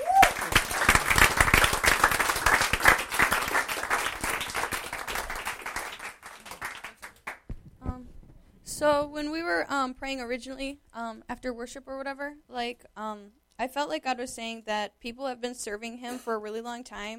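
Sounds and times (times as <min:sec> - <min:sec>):
audience applause: 0:00.0 - 0:07.5
speech: 0:08.8 - 0:17.1.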